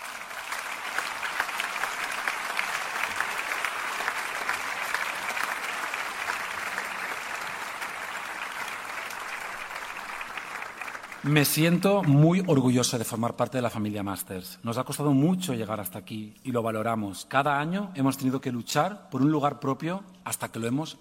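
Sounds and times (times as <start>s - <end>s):
audience applause: 0.0s - 12.8s
speech: 11.3s - 20.9s.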